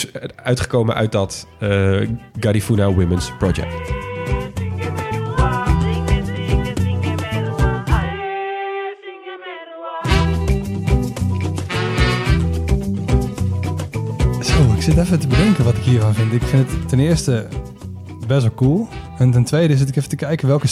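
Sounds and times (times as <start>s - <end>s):
speech: 0.1s - 4.4s, 14.9s - 17.7s, 18.3s - 20.7s
guitar: 0.9s - 8.2s, 10.0s - 20.7s
Garifuna drums: 3.7s - 8.1s, 10.1s - 19.3s.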